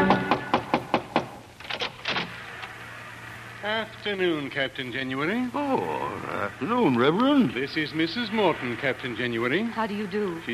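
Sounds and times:
knock at the lighthouse door: 0.1 - 1.4
speech: 3.9 - 10.5.

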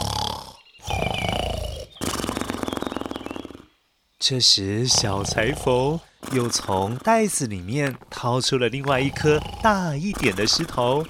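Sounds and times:
giants snoring: 0.0 - 2.8, 4.9 - 7.4, 8.8 - 11.0
speech: 4.2 - 11.0.

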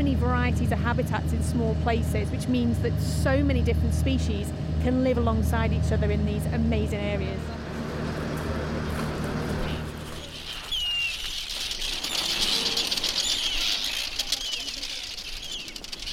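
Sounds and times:
speech: 0.5 - 7.6
Arctic tern colony calling: 7.5 - 16.1.

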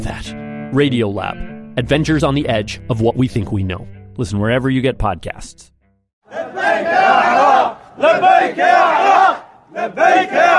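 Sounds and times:
speech: 0.0 - 5.7, 6.3 - 10.5
Iraqi government troops in Kirkuk cheering and shouting in celebration: 6.3 - 10.5.

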